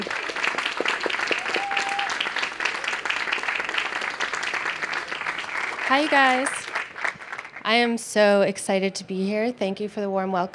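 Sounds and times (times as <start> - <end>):
audience applause at an Apple Store event: 0.0 - 7.7
speech: 5.9 - 6.6, 7.6 - 10.5.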